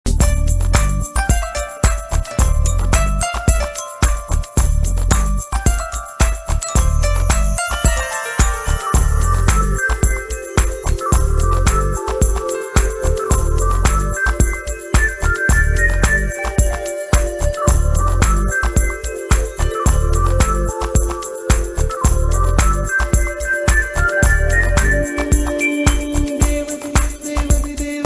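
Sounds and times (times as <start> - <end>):
Tamil love background music ringtone: 1.0 - 28.0.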